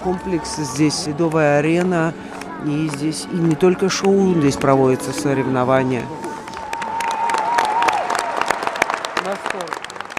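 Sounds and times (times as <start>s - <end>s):
speech: 0.0s - 6.2s
crowd voices murmuring and calling out: 0.0s - 7.3s
audience applause after an ice show: 0.0s - 10.1s.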